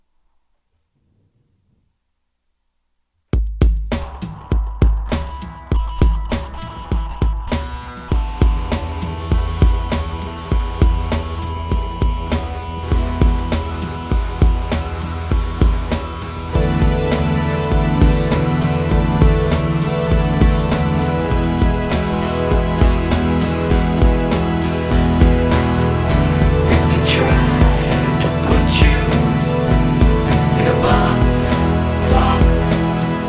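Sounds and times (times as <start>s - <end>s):
guitar: 3.9s - 33.2s
person singing: 25.5s - 33.2s.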